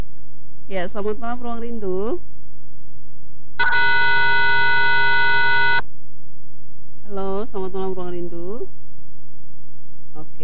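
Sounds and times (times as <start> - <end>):
speech: 0.7 - 2.3, 7.5 - 8.8
harsh buzzing phone disconnect tone: 3.6 - 5.8.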